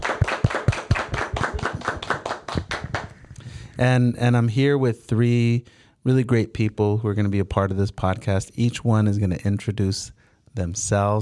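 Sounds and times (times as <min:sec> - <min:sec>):
round of applause: 0:00.0 - 0:03.2
speech: 0:03.8 - 0:11.2.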